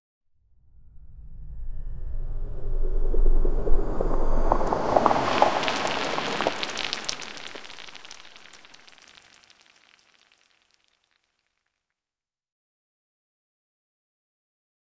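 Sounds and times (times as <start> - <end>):
powerful deep layered time travel sound: 0.6 - 8.2.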